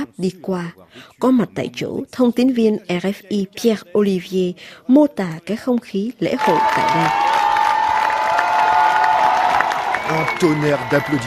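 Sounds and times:
speech: 0.0 - 7.3, 10.1 - 11.2
crowd applauding as France team bus passes: 6.4 - 11.2.

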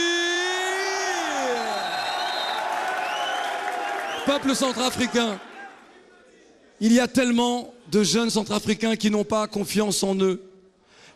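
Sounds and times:
crowd whooping and shouting: 0.0 - 5.8
audience applauding: 1.2 - 5.8
speech: 4.2 - 5.5, 6.8 - 10.5.

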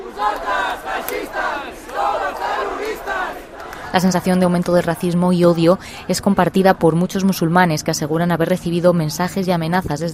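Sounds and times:
crowd chanting: 0.0 - 7.4
speech: 0.2 - 0.5, 3.9 - 10.1.

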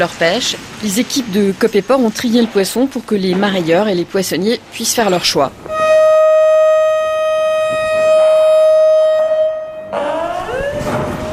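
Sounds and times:
speech: 0.0 - 5.7
fish auction start alarm: 5.7 - 11.3.

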